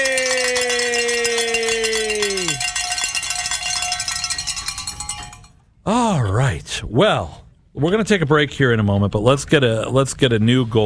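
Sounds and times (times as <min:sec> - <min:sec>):
bells rung to celebrate a fundraising goal: 0:00.0 - 0:05.6
speech: 0:06.8 - 0:10.8.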